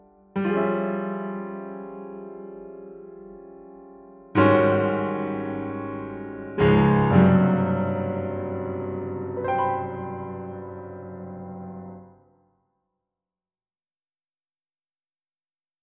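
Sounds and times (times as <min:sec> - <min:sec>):
piano: 0:00.0 - 0:12.4.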